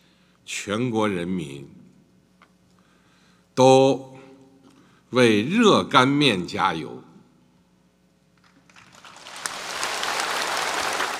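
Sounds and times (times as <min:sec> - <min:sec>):
speech: 0:00.6 - 0:01.8, 0:03.6 - 0:04.1, 0:05.1 - 0:07.1
audience clapping: 0:08.4 - 0:11.1.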